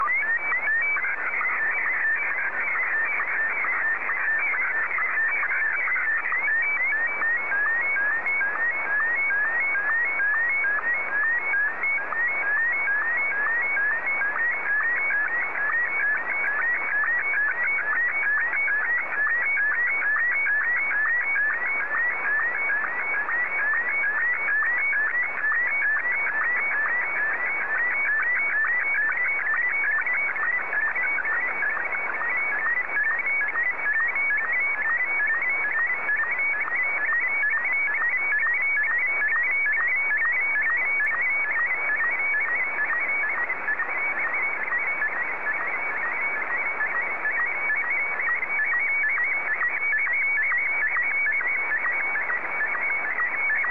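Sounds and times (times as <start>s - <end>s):
Martin 1 slow-scan television signal: 0.0s - 53.6s.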